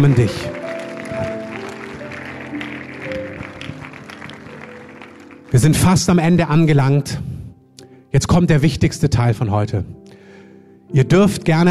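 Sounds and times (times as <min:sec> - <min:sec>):
speech: 0:00.0 - 0:00.6, 0:05.6 - 0:07.3, 0:08.1 - 0:10.0, 0:10.9 - 0:11.7
audience applause: 0:00.0 - 0:06.1.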